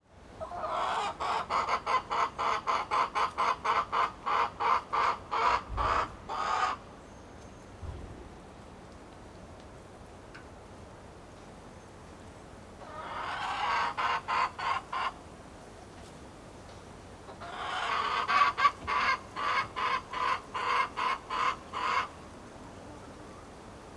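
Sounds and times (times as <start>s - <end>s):
chicken clucking: 0.4s - 6.8s, 12.8s - 15.2s, 17.3s - 22.2s.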